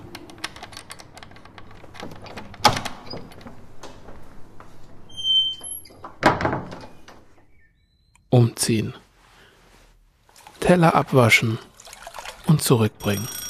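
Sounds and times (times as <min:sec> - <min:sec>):
key rattling in front door lock: 0:00.1 - 0:03.4
front door squeaking open: 0:05.1 - 0:08.2
speech: 0:08.4 - 0:09.0, 0:10.7 - 0:11.7, 0:12.5 - 0:13.4.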